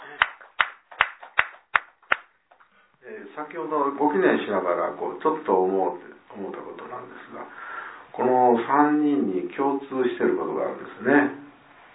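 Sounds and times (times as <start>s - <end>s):
hands clapping in celebration: 0.0s - 2.7s
speech: 3.4s - 11.4s.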